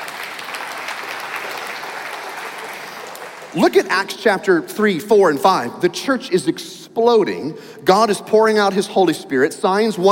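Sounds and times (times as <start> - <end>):
audience applause: 0.0 - 3.8
speech: 3.5 - 10.1.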